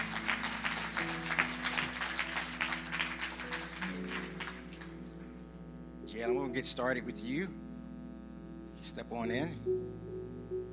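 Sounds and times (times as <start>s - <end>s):
audience clapping: 0.0s - 5.2s
speech: 6.2s - 7.6s, 8.9s - 10.1s.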